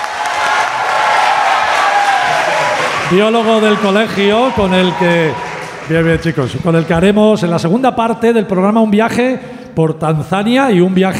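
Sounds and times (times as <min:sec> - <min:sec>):
audience applause: 0:00.0 - 0:07.5
speech: 0:03.1 - 0:11.1.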